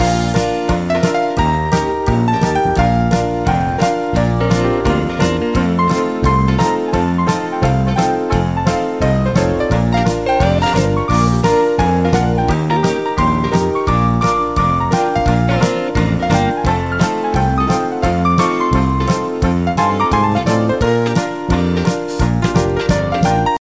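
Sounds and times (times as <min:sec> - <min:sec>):
old pub music ringtone: 0:00.0 - 0:23.5.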